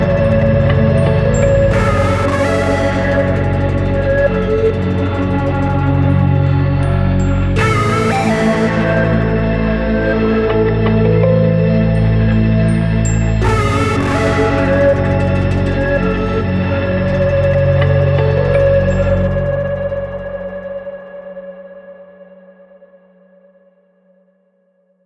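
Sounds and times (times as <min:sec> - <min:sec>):
mysterious tension music: 0:00.0 - 0:22.8.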